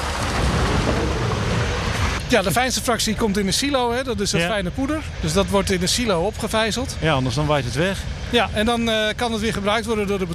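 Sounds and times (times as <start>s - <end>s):
truck driving past: 0.0s - 2.3s
speech: 2.3s - 10.3s.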